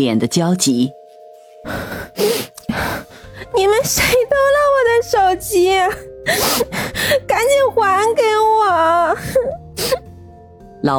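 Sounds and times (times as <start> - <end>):
speech: 0.0 - 1.0, 3.6 - 10.0
breathless panting after running: 1.6 - 4.2, 6.2 - 7.3.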